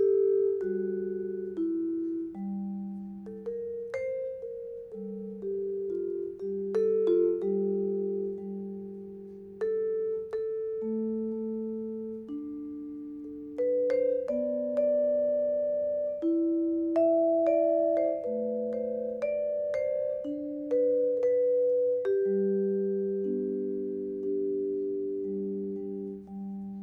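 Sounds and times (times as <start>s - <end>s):
vibraphone melody: 0.0s - 26.8s.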